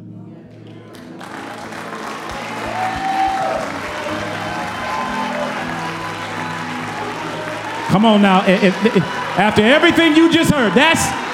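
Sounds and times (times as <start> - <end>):
crowd clapping and cheering: 0.5 - 11.3
whoops and shouts: 2.4 - 11.3
speech: 7.9 - 11.2.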